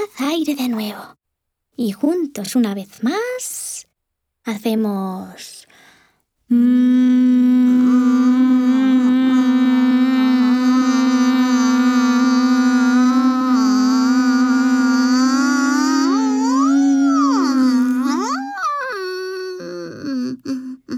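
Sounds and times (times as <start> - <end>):
speech: 0.0 - 1.2, 1.8 - 3.7, 4.4 - 5.6, 6.5 - 8.3
closed-mouth humming: 6.5 - 20.9.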